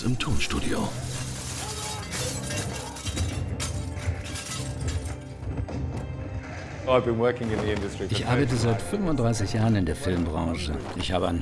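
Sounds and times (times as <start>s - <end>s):
speech: 0.0s - 1.2s, 6.9s - 11.4s
dragon crashing through glass roof, shattering glass and debris: 0.7s - 5.4s.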